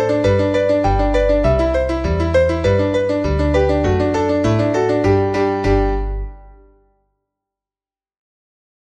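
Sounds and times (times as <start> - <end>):
polka music: 0.0 - 6.7.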